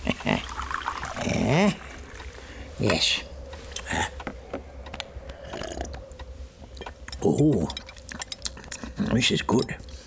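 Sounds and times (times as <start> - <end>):
tea being poured into a glass: 0.2 - 2.5
speech: 1.5 - 1.8, 2.8 - 3.3, 7.4 - 7.8, 9.2 - 9.9.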